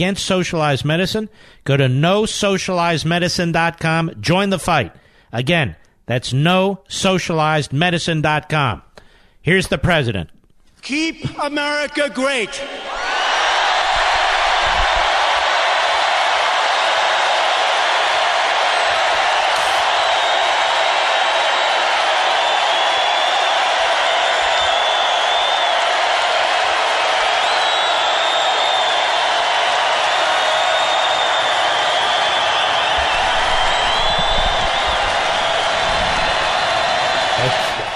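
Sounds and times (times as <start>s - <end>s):
speech: 0.0s - 13.0s
large presidential rally crowd cheering: 11.9s - 37.9s.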